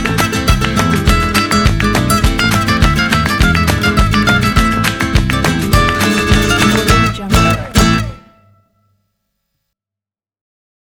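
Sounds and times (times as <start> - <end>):
Spanish rumba music: 0.0 - 8.5.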